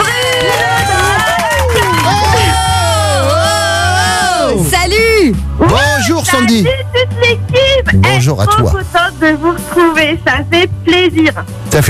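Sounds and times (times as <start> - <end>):
studio crowd cheering and whooping: 0.0 - 4.6
steady low musical bed: 0.1 - 11.8
speech: 5.6 - 11.8.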